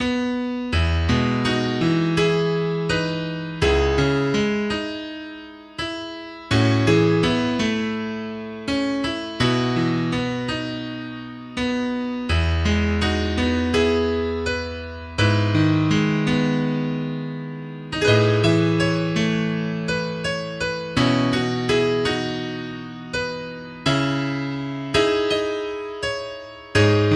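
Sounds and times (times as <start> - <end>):
solo piano: 0.0 - 27.1.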